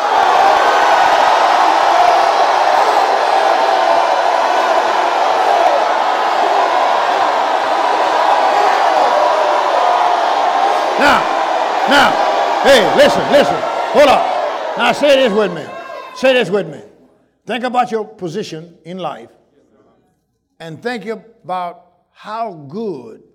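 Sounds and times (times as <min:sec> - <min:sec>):
large crowd shouting and cheering: 0:00.0 - 0:16.9
speech: 0:11.9 - 0:16.9, 0:17.5 - 0:19.4, 0:20.6 - 0:23.3.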